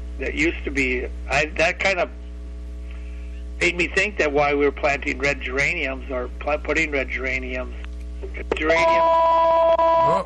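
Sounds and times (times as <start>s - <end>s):
speech: 0.2s - 2.2s, 3.6s - 10.2s
business line telephone two-tone ring: 8.4s - 10.1s.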